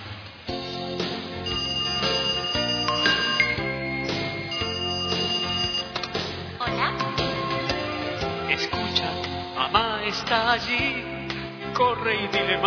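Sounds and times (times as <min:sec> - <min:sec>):
song with steady sustained instrumental chords: 0:00.6 - 0:12.6
telephone ringing with high electronic trills: 0:01.4 - 0:06.2
speech: 0:10.3 - 0:11.0, 0:11.8 - 0:12.6.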